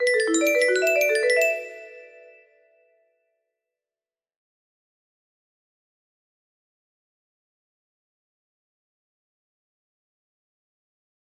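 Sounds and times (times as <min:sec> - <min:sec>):
music box melody: 0:00.0 - 0:02.4.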